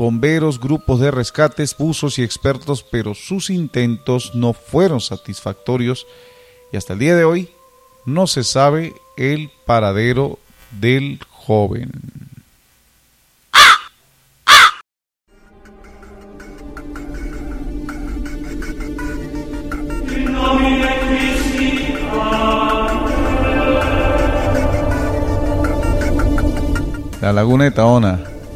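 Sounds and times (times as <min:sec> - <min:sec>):
speech: 0:00.0 - 0:12.2, 0:27.2 - 0:28.3
crow cawing: 0:13.6 - 0:14.8
swelling wash of layered tonal sound: 0:15.5 - 0:27.8.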